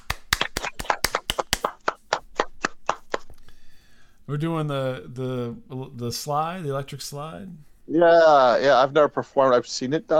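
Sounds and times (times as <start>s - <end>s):
hands clapping: 0.0s - 3.4s
speech: 4.3s - 10.1s.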